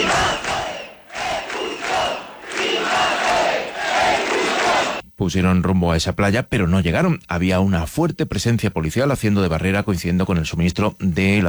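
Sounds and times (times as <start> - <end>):
large crowd of protesters cheering and chanting: 0.0 - 5.0
speech: 5.2 - 11.4.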